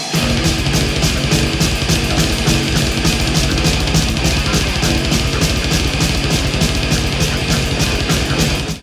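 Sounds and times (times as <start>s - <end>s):
double bass: 0.2s - 8.8s.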